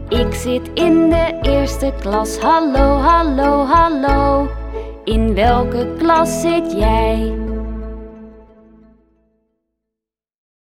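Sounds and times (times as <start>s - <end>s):
accompaniment with singing: 0.1s - 8.1s.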